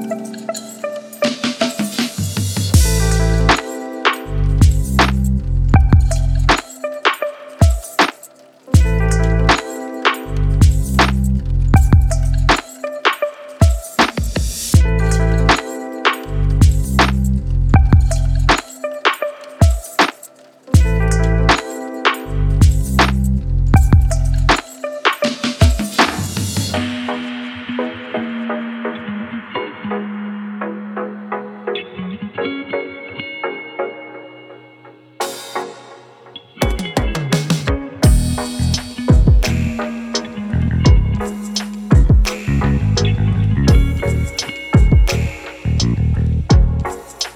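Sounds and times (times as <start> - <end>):
lo-fi beats: 1.2 - 28.2, 36.6 - 47.3.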